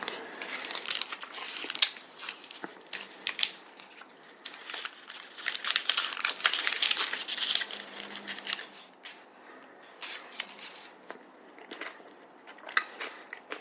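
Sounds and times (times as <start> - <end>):
plastic candy wrapper crinkling as it is unwrapped: 0.0 - 9.2, 10.0 - 11.0.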